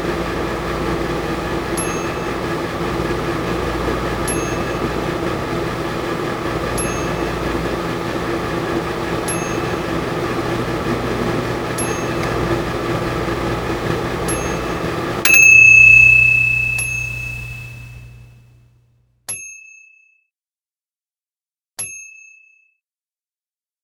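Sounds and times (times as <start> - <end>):
microwave: 0.0 - 18.9.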